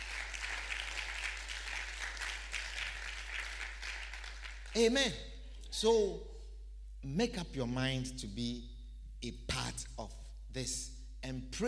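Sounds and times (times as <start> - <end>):
audience clapping hands: 0.0 - 5.0
speech: 4.8 - 6.3, 7.0 - 11.6.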